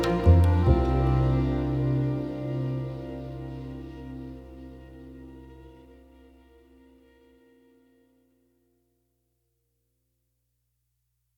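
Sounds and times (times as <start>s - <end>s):
opening sequence film score music: 0.0s - 7.2s.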